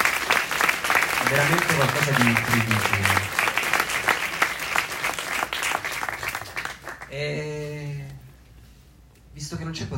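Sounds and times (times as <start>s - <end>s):
audience applause: 0.0s - 7.1s
speech: 1.3s - 3.4s, 7.1s - 8.2s, 9.4s - 9.9s.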